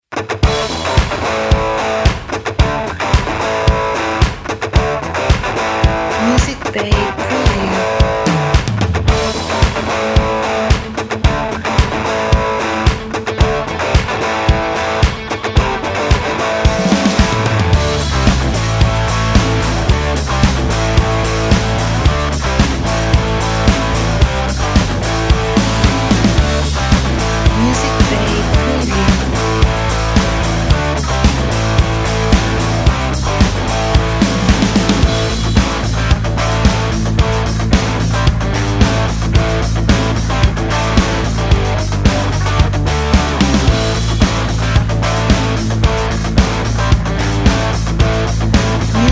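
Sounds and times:
uplifting hard rock music: 0:00.1 - 0:49.0.

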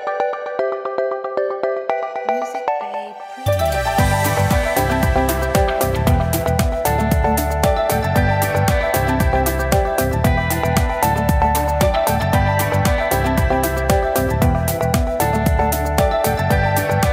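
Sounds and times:
corporate logo jingle: 0:00.1 - 0:17.1.

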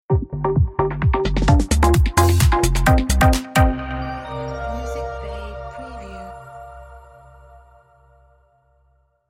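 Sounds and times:
hi-tech house music ident: 0:00.1 - 0:07.2.

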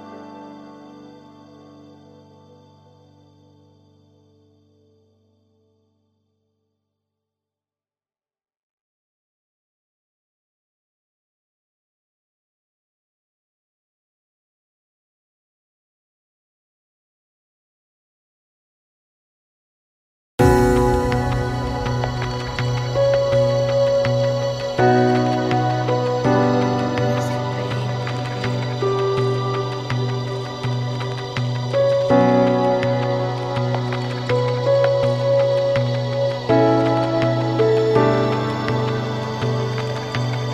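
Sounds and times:
ambient piano space soundscape: 0:00.0 - 0:06.2, 0:20.4 - 0:40.5.

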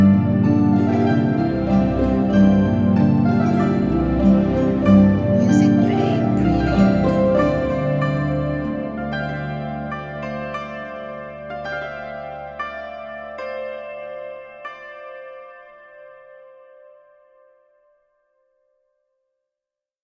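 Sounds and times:
Celtic harps playing: 0:00.0 - 0:14.0.

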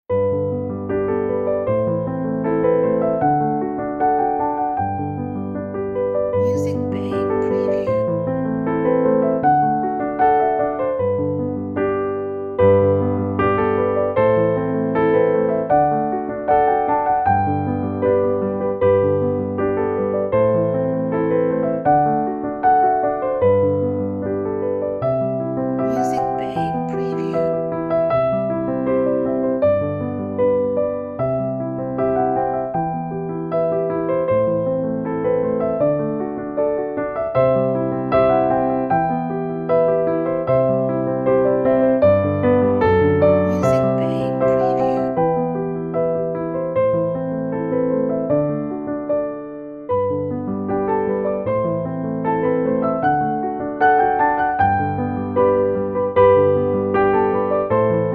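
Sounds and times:
hopeful uplifting piano music: 0:00.1 - 0:58.1.

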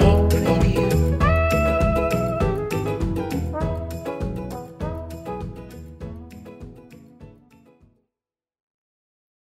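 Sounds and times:
folk jazz music: 0:00.0 - 0:07.2.

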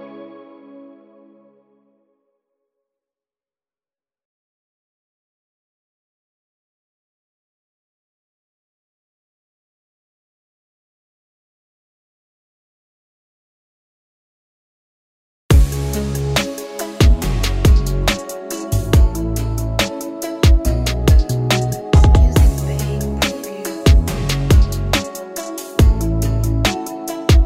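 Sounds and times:
nostalgic modern urban trap beat: 0:15.5 - 0:27.4.

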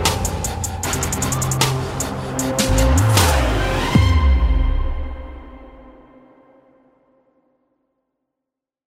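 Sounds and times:
hip hop and trap action cinematic trailer music: 0:00.0 - 0:06.7.

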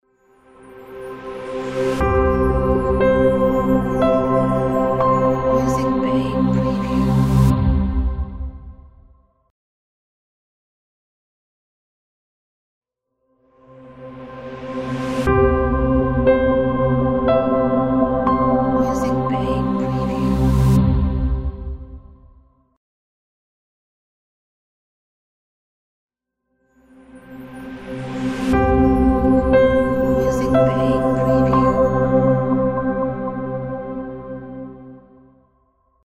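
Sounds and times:
minimalistic ambient logo sound: 0:00.2 - 0:09.2, 0:13.6 - 0:22.4, 0:26.8 - 0:35.8.

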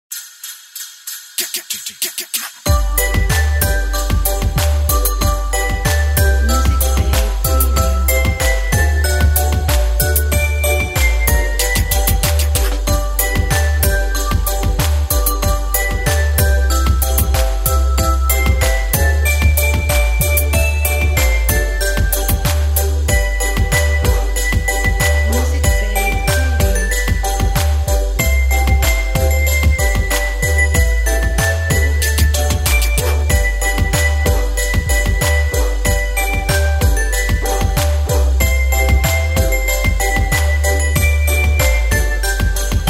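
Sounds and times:
Christmas song: 0:00.1 - 0:42.8.

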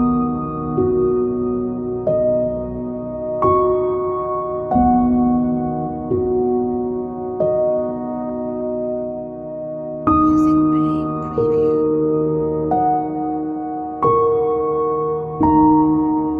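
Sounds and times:
cinematic ambient piano: 0:00.0 - 0:16.3.

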